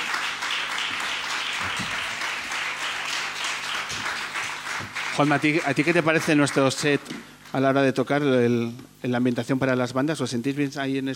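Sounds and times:
audience applause: 0.0 - 7.0
speech: 5.2 - 11.1.

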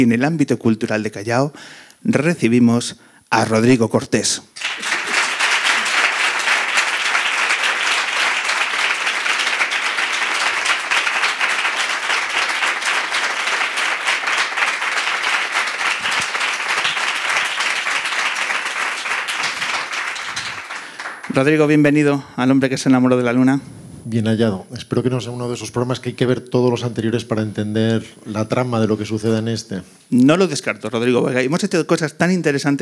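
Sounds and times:
speech: 0.0 - 4.9, 21.4 - 32.8
crowd applauding for the guest: 4.6 - 21.9.

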